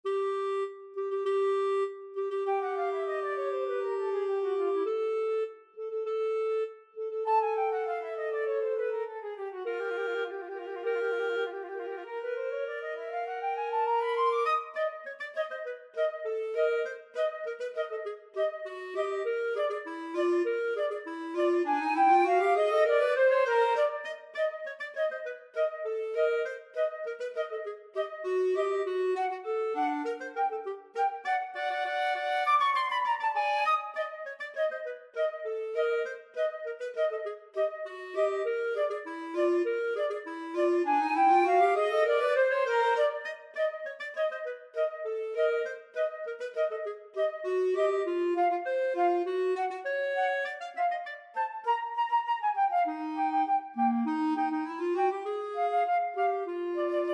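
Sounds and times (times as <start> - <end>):
flute and clarinet duet: 0.0 - 57.1.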